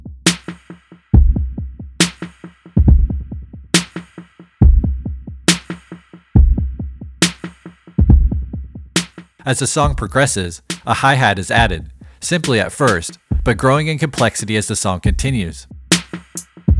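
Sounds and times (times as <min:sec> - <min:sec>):
deep kick drum with echoes: 0:00.0 - 0:04.0, 0:04.6 - 0:09.1, 0:09.8 - 0:10.1, 0:11.6 - 0:12.0, 0:13.3 - 0:13.6, 0:15.1 - 0:16.7
bright snare drum with echoes: 0:00.3 - 0:11.0, 0:11.6 - 0:14.4, 0:15.9 - 0:16.7
speech: 0:09.5 - 0:15.7.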